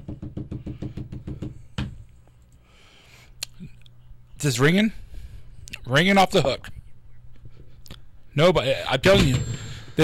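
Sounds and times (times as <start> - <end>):
hand beating on a table: 0.0 - 2.0
speech: 4.4 - 5.0, 5.9 - 6.8, 8.4 - 10.0.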